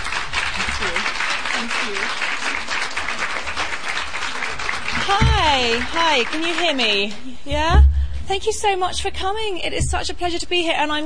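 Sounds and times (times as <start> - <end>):
audience applause welcoming author Sophie Kinsella at a book event in Denver: 0.0 - 7.2
speech: 5.1 - 11.0.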